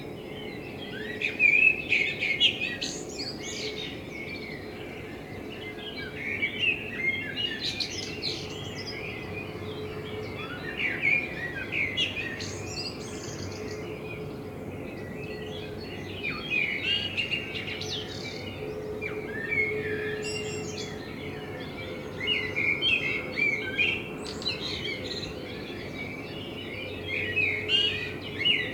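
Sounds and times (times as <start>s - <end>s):
common blackbird song warbling: 0.0s - 28.7s.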